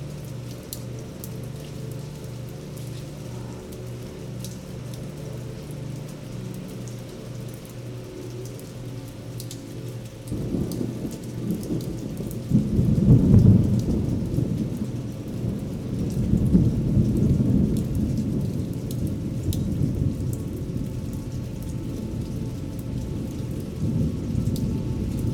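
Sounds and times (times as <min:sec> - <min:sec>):
thunderstorm: 0:10.3 - 0:22.4, 0:23.2 - 0:25.3.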